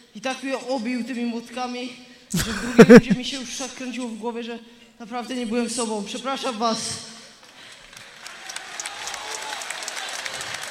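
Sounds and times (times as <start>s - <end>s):
speech: 0.2s - 7.1s
laughter: 2.4s - 3.5s
audience applause: 7.8s - 10.6s.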